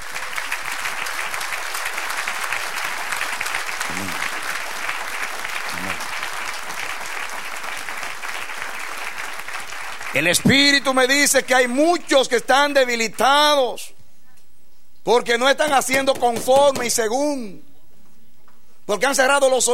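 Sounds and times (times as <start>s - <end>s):
audience applause: 0.0s - 12.4s
speech: 10.2s - 14.0s, 15.1s - 17.7s, 18.9s - 19.7s.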